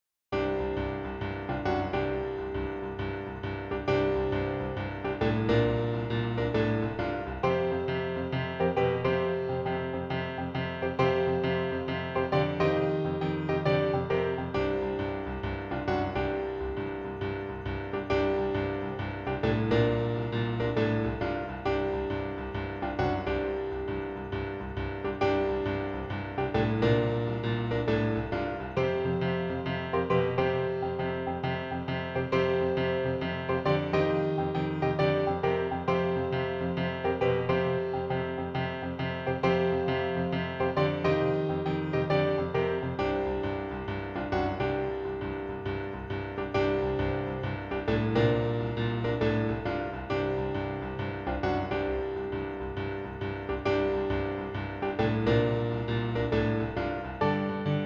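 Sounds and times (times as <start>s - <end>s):
bar piano: 0.3s - 57.8s.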